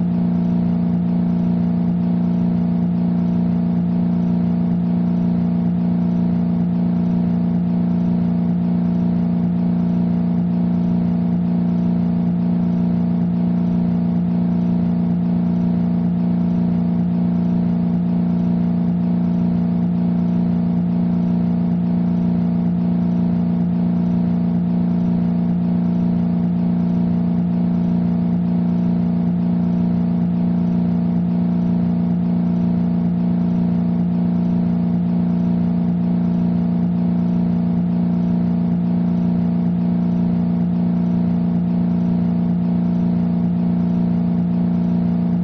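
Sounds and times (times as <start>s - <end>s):
engine ambience: 0.0s - 45.4s.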